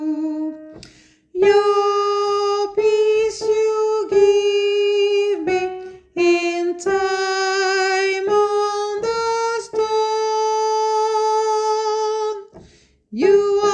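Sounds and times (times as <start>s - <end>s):
soprano voice singing: 0.0s - 13.7s.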